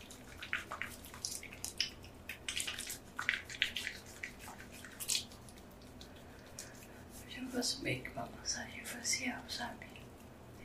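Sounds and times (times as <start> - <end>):
skincare product pumped onto a wet face, wet squelches: 0.0 - 7.2
speech: 7.6 - 9.9.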